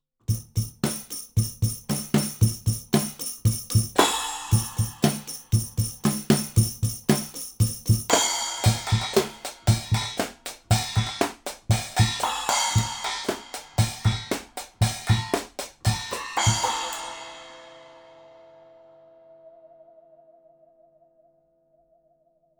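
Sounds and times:
drums recorded with R-121 Blumlein pair: 0.3 - 18.2.

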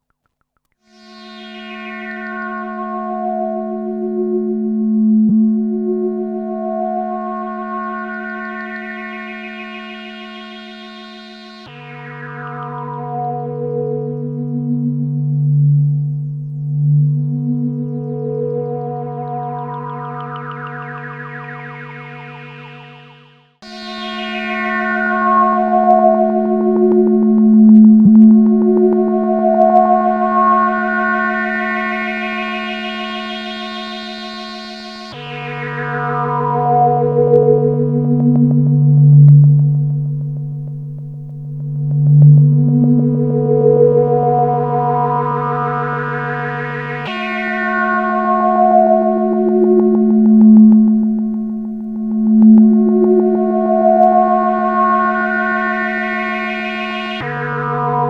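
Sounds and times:
duophonic feedback synth pad: 0.9 - 58.0.

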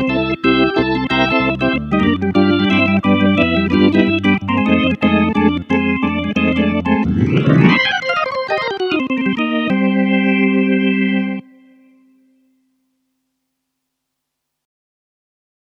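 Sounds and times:
Hammond XK 4 organ chorus: 0.0 - 12.2.

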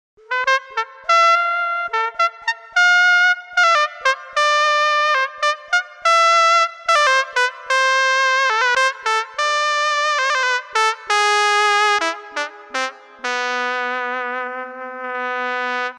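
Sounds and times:
Korg Prophecy VST S-Trumpet synth trumpet: 0.2 - 15.9.

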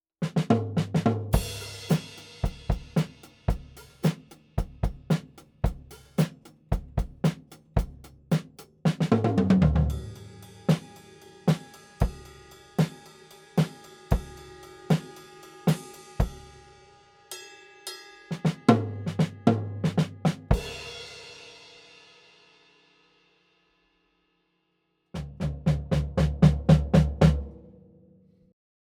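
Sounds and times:
drum kit recorded with Coles 4038 microphone: 0.2 - 16.8, 18.3 - 22.2, 25.2 - 27.7.

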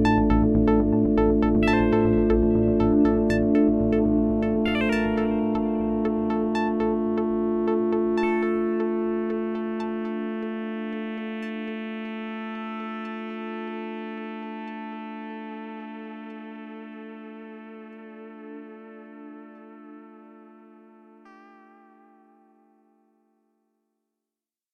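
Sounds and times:
A110 single VCO synth: 0.0 - 12.6.

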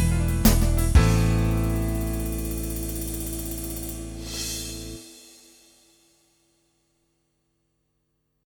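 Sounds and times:
unplugged swing music: 0.0 - 5.1.

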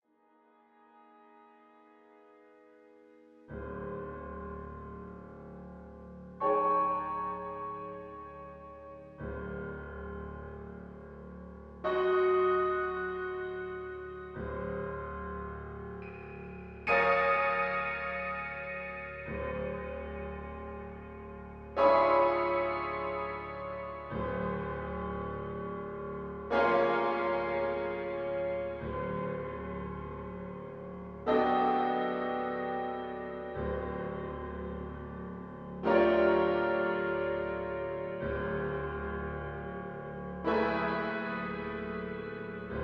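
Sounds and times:
dramatic piano: 0.6 - 42.8.

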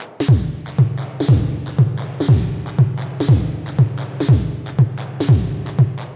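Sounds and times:
darkwave sound effects: 0.3 - 6.1.

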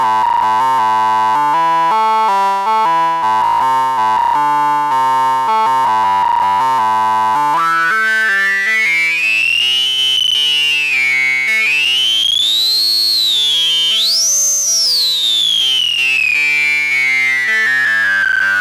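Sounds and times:
synth with high-pass filter and drive: 0.0 - 18.5.

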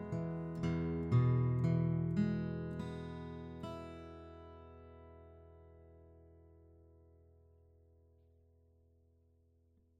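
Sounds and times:
acoustic guitar: 0.0 - 9.1.

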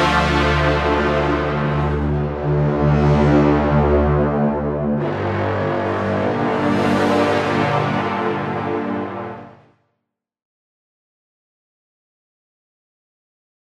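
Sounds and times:
brass designer ambience: 0.0 - 9.7.

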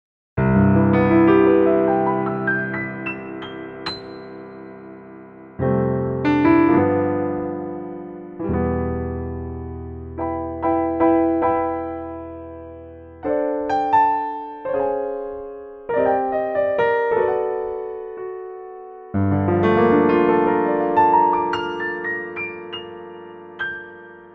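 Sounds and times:
Artis SE piano: 0.4 - 24.3.

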